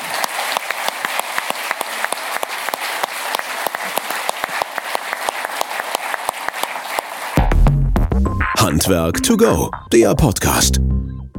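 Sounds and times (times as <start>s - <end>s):
audience applauding: 0.0s - 7.5s
speech: 8.8s - 10.9s.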